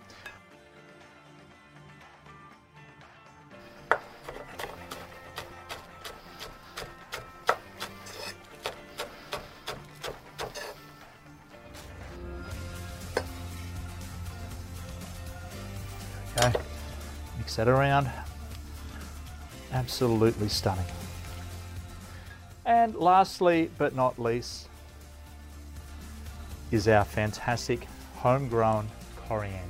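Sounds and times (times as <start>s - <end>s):
utensil stirring a cooking dish in a pan: 3.8s - 11.0s
speech: 17.6s - 18.2s, 19.9s - 21.0s, 22.8s - 24.7s, 26.7s - 29.6s.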